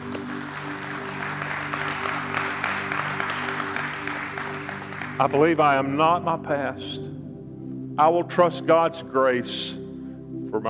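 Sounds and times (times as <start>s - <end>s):
audience clapping in praise: 0.0s - 5.8s
speech: 5.2s - 7.1s, 8.0s - 9.8s.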